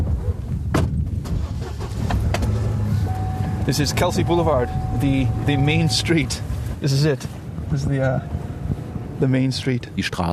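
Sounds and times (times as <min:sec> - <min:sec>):
clicks and rattles from the pickup truck cab: 0:00.7 - 0:04.1
pickup truck engine rumbling while driving: 0:01.0 - 0:10.3
faint whining tone: 0:02.5 - 0:06.8
speech: 0:03.7 - 0:08.4, 0:09.2 - 0:10.3.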